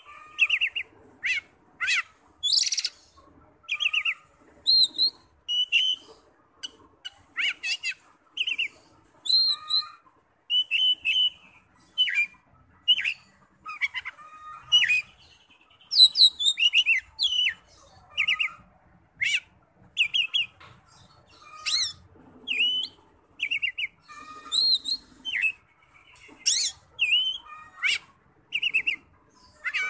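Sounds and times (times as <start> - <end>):
Oriental magpie-robin song: 0.4 - 3.0, 3.7 - 6.0, 7.4 - 9.9, 10.5 - 13.9, 14.8 - 18.6, 20.0 - 20.5, 21.6 - 25.6, 26.4 - 29.1.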